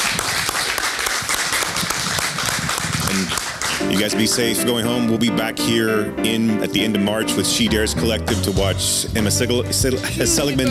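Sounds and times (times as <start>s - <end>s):
audience applause: 0.0s - 4.9s
speech: 4.0s - 10.6s.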